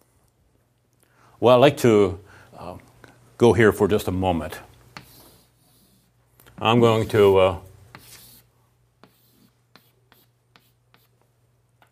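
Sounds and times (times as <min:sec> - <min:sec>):
speech: 0:01.4 - 0:04.7, 0:06.6 - 0:07.7
pen drawing a box on paper: 0:07.1 - 0:11.1.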